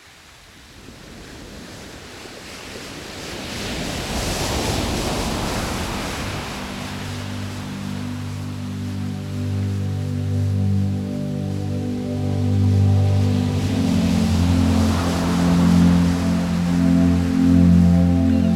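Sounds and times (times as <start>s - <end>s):
ocean waves washing onto the shore: 0.0s - 18.5s
soft sustained musical tones: 5.9s - 18.5s.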